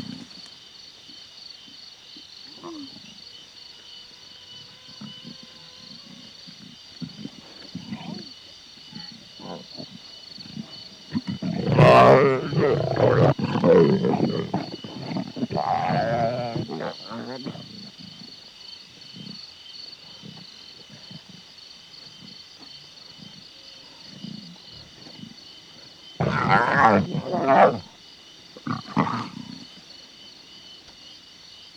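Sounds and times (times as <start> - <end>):
lion growling: 5.0 - 19.4, 20.0 - 22.4, 23.1 - 28.0, 28.6 - 29.8.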